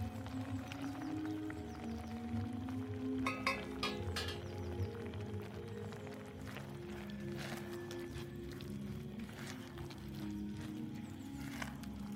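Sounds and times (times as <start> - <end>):
old-time music playing in a kitchen: 0.0 - 12.1
clinks and clatters in a kitchen: 3.2 - 4.8.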